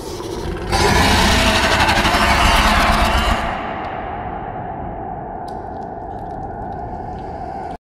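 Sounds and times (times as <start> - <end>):
alien scream: 0.3 - 4.1.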